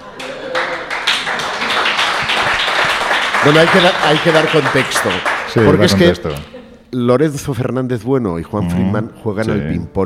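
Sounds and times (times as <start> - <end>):
applause: 0.2 - 6.0
speech: 3.4 - 10.0.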